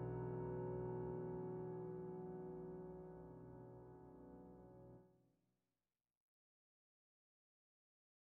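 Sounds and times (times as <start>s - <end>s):
slightly hopeful solo piano: 0.0s - 5.0s.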